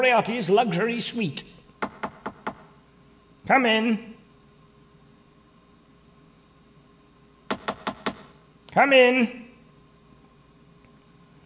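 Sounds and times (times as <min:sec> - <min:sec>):
speech: 0:00.0 - 0:01.6, 0:03.5 - 0:04.1, 0:08.8 - 0:09.4
knocking on a cabin door: 0:01.8 - 0:02.7, 0:07.5 - 0:08.3.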